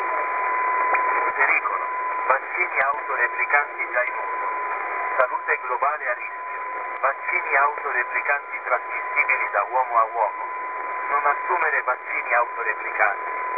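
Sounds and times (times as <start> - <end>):
WebSDR radio receiver signal at 7000.0 kHz: 0.0 - 13.5.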